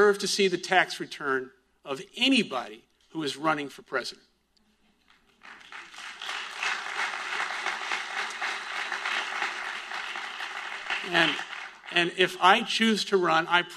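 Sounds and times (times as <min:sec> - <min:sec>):
speech: 0:00.0 - 0:04.3, 0:11.1 - 0:13.7
audience applause: 0:05.3 - 0:12.4.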